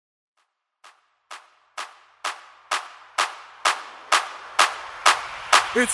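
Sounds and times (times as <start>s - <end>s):
Afro clap acapella: 1.3s - 5.7s.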